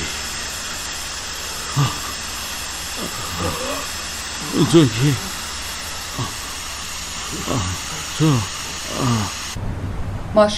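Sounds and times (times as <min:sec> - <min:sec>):
aerosol spray hiss: 0:00.0 - 0:09.6
faint vocal murmurs: 0:01.4 - 0:09.6
speech: 0:01.8 - 0:02.0, 0:04.5 - 0:05.4, 0:07.3 - 0:10.5.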